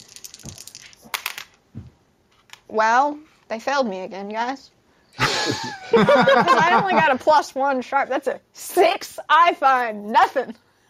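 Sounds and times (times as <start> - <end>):
dice rattling on a hard surface: 0.0 - 1.6
speech: 2.7 - 4.8, 5.4 - 10.6
laughter: 5.2 - 7.2.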